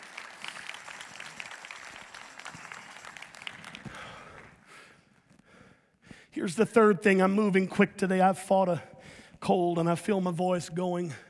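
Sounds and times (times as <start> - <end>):
audience clapping: 0.0 - 4.9
speech: 6.4 - 11.2.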